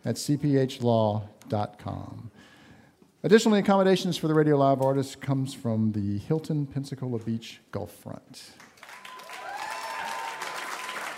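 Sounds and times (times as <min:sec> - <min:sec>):
speech: 0:00.0 - 0:02.5, 0:03.2 - 0:08.7
audience applause: 0:08.7 - 0:11.1.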